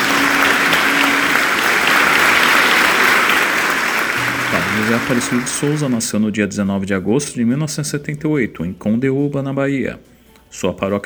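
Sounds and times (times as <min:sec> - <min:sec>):
church audience applause: 0:00.0 - 0:06.0
speech: 0:04.9 - 0:11.0.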